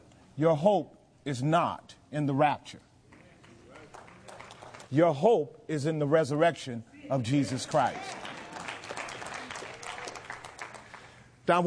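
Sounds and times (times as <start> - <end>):
speech: 0.4 - 2.9, 4.9 - 8.2, 11.5 - 11.6
crowd clapping in a large room: 3.2 - 5.0, 7.6 - 11.2.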